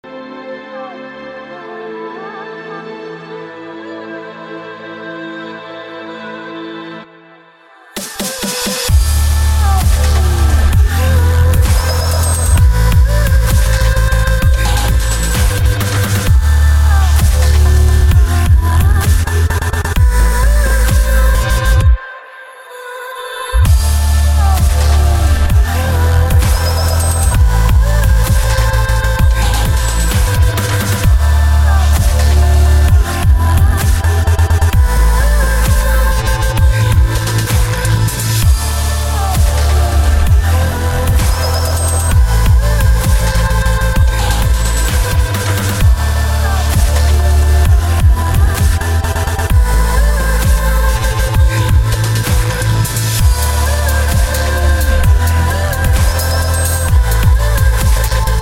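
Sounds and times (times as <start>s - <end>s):
dubstep music: 7.8s - 58.4s.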